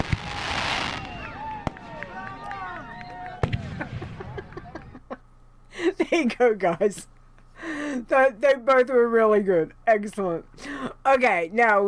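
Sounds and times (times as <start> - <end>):
cheering sound effect: 0.0 - 5.2
laughter: 2.0 - 6.4
speech: 6.1 - 7.1, 8.0 - 11.8.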